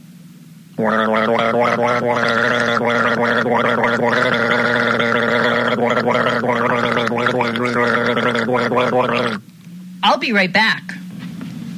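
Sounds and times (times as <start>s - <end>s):
person guzzling a drink: 0.8s - 9.4s
speech: 0.8s - 11.0s.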